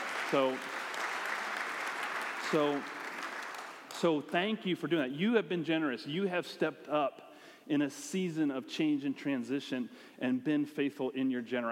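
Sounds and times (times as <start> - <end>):
person clapping in church: 0.0 - 4.0
speech: 0.3 - 0.7, 2.5 - 3.0, 4.0 - 11.7.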